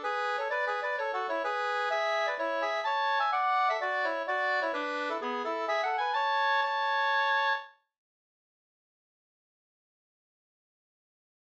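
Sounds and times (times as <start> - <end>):
pols folk dance tune: 0.0 - 7.7.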